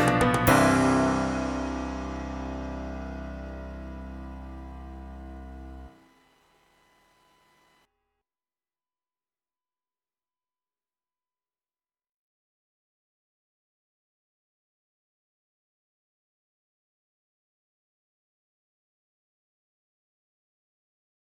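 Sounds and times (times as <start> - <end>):
keyboard: 0.0 - 6.0.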